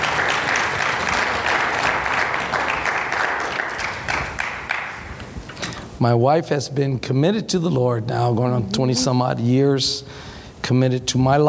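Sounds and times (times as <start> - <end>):
audience applause: 0.0 - 5.2
speech: 6.0 - 11.4.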